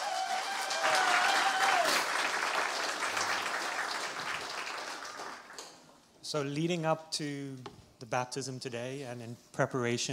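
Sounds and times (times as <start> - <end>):
audience applause: 0.0 - 5.8
speech: 6.3 - 10.1.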